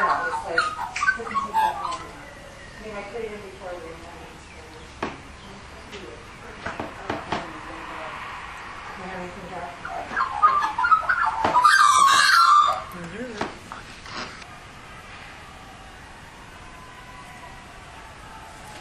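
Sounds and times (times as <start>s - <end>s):
Australian magpie giving mellow gurgling warbles: 0.0s - 2.1s, 9.8s - 13.0s.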